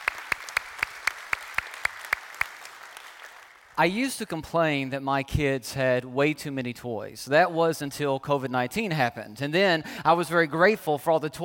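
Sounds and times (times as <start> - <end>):
church congregation clapping in rhythm: 0.0 - 3.8
speech: 3.8 - 11.4.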